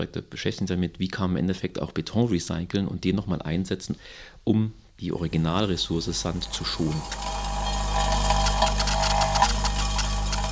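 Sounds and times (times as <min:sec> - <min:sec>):
speech: 0:00.0 - 0:07.5
Fraunhofer prototype machine sorting building materials from demolition: 0:05.2 - 0:10.4.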